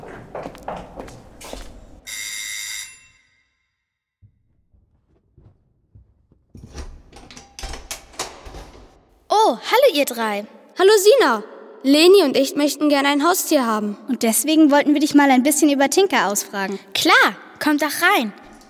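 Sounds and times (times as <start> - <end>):
doorbell ringing: 2.1 - 3.5
speech: 9.5 - 18.4.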